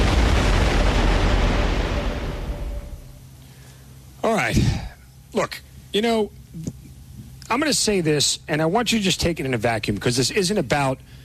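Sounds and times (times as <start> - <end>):
volcano eruption explosion: 0.0 - 3.2
speech: 4.5 - 6.8, 7.5 - 11.2.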